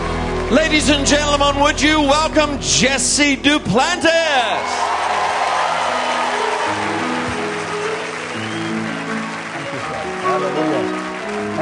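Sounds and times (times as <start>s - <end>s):
large audience applause: 0.0s - 1.9s, 4.1s - 11.6s
speech: 0.5s - 5.0s
voices cheering: 3.8s - 11.0s.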